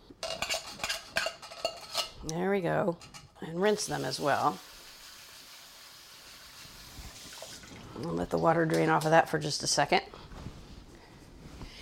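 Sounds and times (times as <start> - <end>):
utensil scraping canned beans from metal can into colander: 0.2 - 2.2
speech: 2.2 - 4.7, 8.0 - 10.2.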